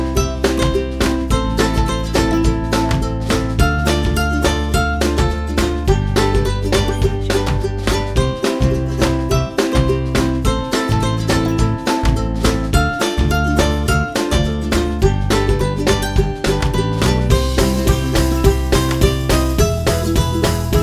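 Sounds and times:
background ukulele playing: 0.0 - 20.8.

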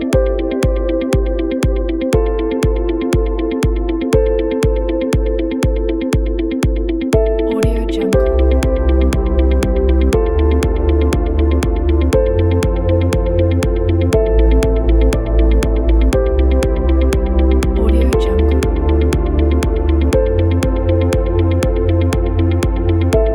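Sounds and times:
motivational ambient corporate music: 0.0 - 23.3.

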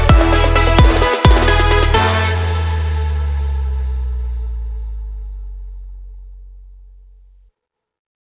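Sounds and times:
pop trap music: 0.0 - 4.8.

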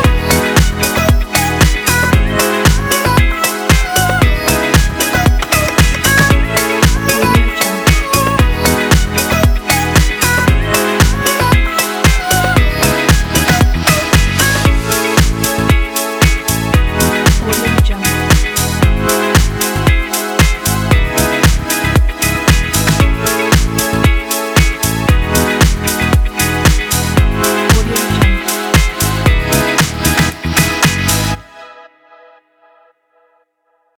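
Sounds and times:
corporate lounge house music: 0.0 - 31.6.

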